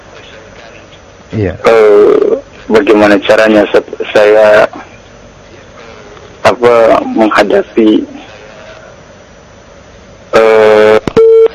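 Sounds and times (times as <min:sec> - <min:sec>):
speech: 0:01.4 - 0:04.9, 0:06.5 - 0:08.1
telephone busy tone after a call is cut off: 0:10.6 - 0:11.5.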